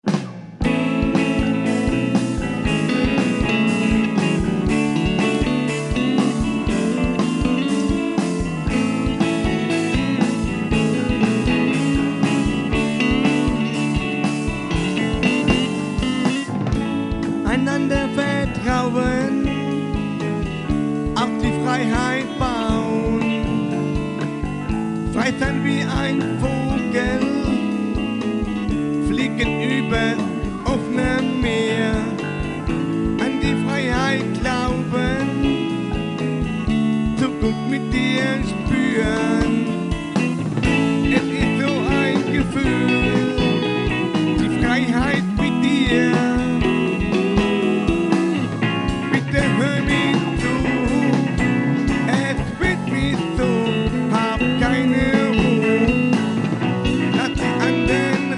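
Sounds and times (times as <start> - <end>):
guitar: 0.0 - 58.3.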